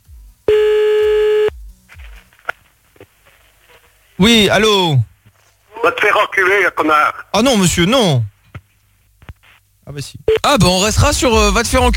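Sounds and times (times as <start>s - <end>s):
telephone tone as a call is placed late at night: 0.5s - 1.5s
speech: 4.2s - 5.1s, 5.8s - 8.3s, 9.9s - 11.9s.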